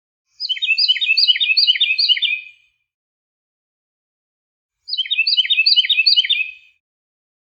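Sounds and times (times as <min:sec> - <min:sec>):
songbird whistled song: 0:00.3 - 0:02.8, 0:04.9 - 0:06.8.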